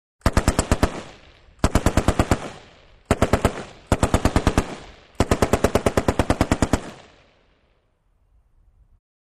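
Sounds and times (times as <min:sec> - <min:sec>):
M-60 automatic machine gun bursts: 0:00.2 - 0:07.0.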